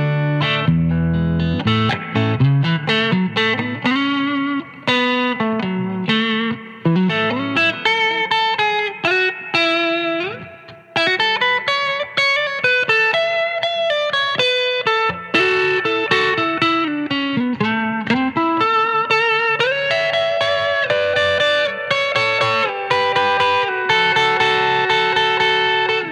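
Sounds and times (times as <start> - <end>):
fingerstyle guitar on neck pickup with light grind and reverb: 0.0 - 26.1.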